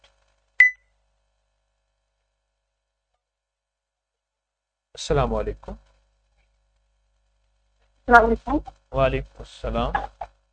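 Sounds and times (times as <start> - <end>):
short electronic beep of a phone call ending: 0.6 - 0.8
speech: 5.0 - 5.9, 8.1 - 10.1.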